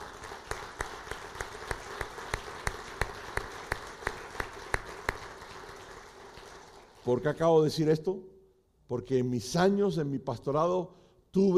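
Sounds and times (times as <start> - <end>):
crowd applauding: 0.0 - 7.3
rhythmic sharp claps: 0.0 - 7.4
speech: 7.1 - 8.3, 8.9 - 11.5.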